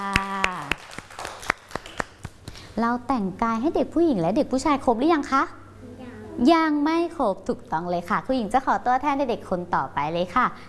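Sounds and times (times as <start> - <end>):
children clapping in a steady rhythm: 0.0 - 2.6
speech: 2.8 - 5.6, 6.4 - 10.6.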